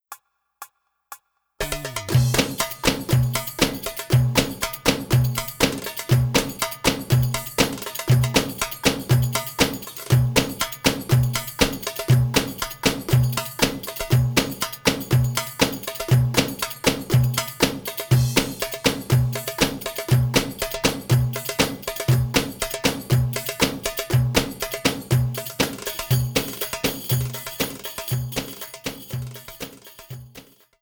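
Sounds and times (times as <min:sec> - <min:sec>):
fast maksum bellydance music: 0:01.6 - 0:30.6.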